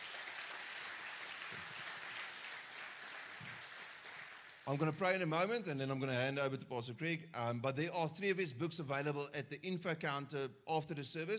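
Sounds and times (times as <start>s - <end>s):
audience applauding: 0.0s - 4.9s
speech: 4.7s - 11.3s.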